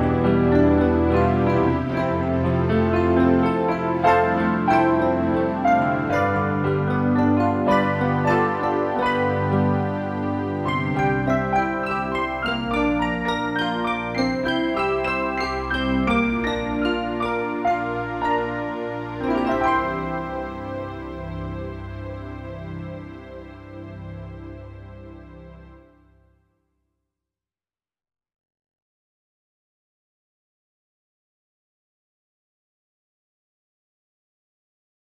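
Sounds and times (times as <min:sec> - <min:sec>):
instrumental music: 0:00.0 - 0:26.2.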